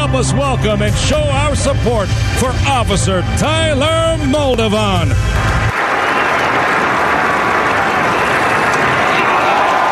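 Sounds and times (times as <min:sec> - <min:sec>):
speech: 0:00.1 - 0:05.6
stadium crowd applauding: 0:05.2 - 0:09.9.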